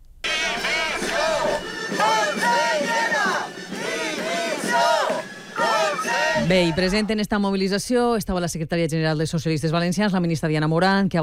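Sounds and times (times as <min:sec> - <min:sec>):
protest crowd chanting: 0:00.3 - 0:07.2
speech: 0:06.5 - 0:11.2.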